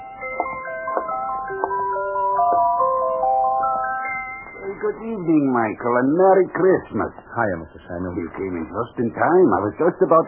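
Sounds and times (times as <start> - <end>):
music box playing: 0.0 - 5.5
speech: 4.8 - 10.2.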